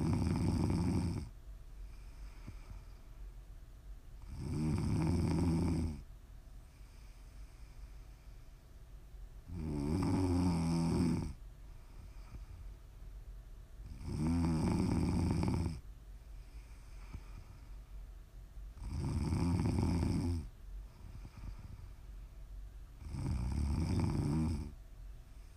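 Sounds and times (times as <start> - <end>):
loud deep rasping snoring: 0.0 - 1.3, 4.2 - 6.0, 9.5 - 11.4, 13.9 - 15.8, 18.8 - 20.5, 23.0 - 24.8.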